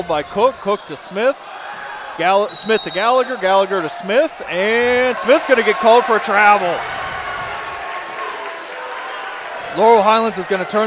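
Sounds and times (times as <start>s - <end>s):
speech: 0.0s - 1.5s, 2.2s - 7.0s, 9.8s - 10.8s
basketball crowd cheering: 0.0s - 10.8s
crowd clapping: 5.2s - 10.8s.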